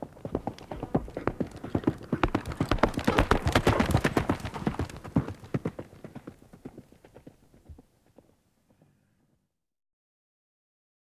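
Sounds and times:
horse galloping: 0.0 - 9.0.

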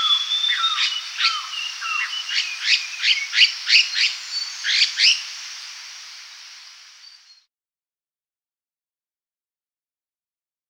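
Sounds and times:
red-faced liocichla scolding calls: 0.0 - 7.2
hiss: 0.0 - 7.4.

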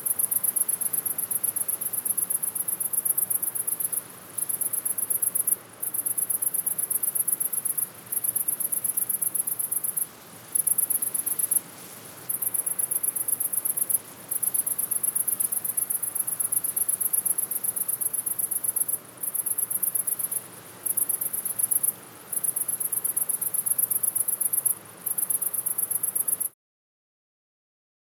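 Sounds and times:
cricket chirping: 0.0 - 11.6, 12.3 - 26.5
faint hiss: 0.0 - 26.5.

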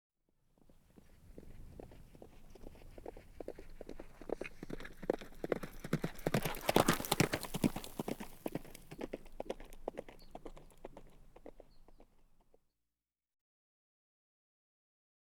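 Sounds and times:
horse cantering hoofbeats: 0.7 - 12.6.

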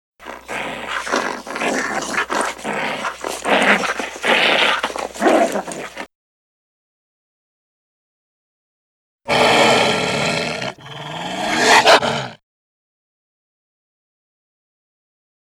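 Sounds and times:
dog growling: 0.2 - 6.1, 9.3 - 12.4.

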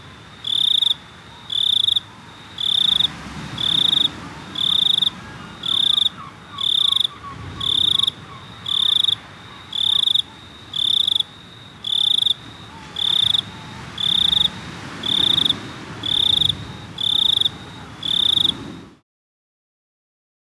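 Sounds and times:
cricket chirping in shrill buzzy trills: 0.0 - 19.0.

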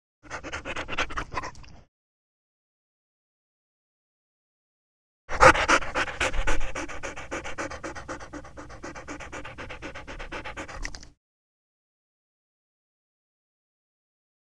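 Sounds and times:
dog panting: 0.2 - 1.7, 5.3 - 11.1.

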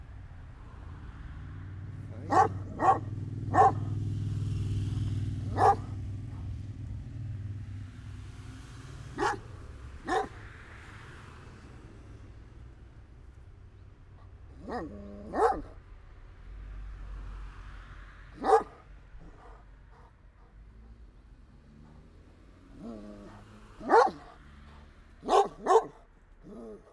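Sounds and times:
engine noise and traffic rumble: 0.0 - 26.9
dog barking: 2.1 - 4.1, 4.9 - 6.6, 9.1 - 10.5, 14.6 - 15.9, 18.3 - 20.6, 22.7 - 26.9.

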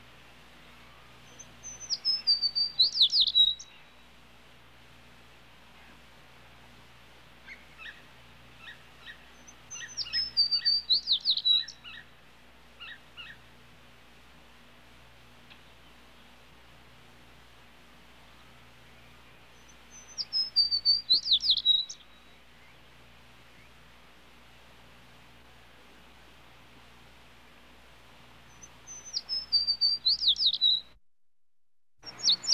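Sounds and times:
sparrow chirping: 1.3 - 3.8, 8.6 - 12.0, 19.6 - 22.1, 28.5 - 30.9, 32.1 - 32.5.

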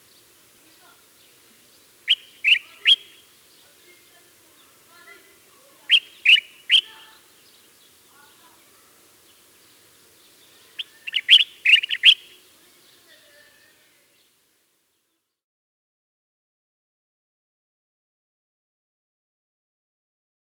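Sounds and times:
common bulbul quick chirps: 2.1 - 3.2, 5.9 - 7.2, 10.3 - 12.4.

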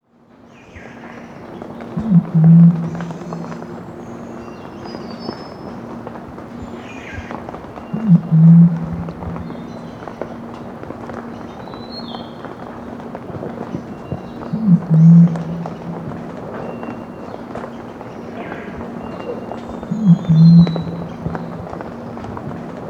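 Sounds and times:
white-bellied imperial pigeon giving deep booming coos: 2.0 - 3.8, 8.0 - 9.6, 14.5 - 16.6, 19.7 - 22.2.

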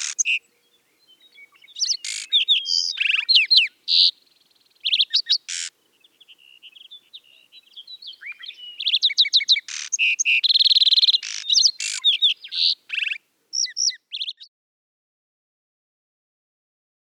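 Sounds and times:
Lark sparrow song with trills, buzzes and downslurred whistles: 0.0 - 14.5.

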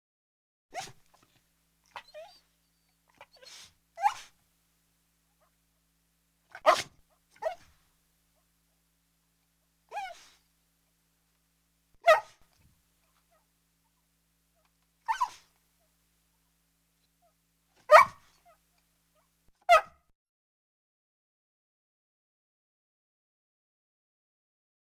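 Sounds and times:
dog whining: 0.8 - 1.2, 1.9 - 4.4, 6.5 - 7.8, 9.9 - 10.4, 15.1 - 15.5
dog snuffling: 3.1 - 4.3.

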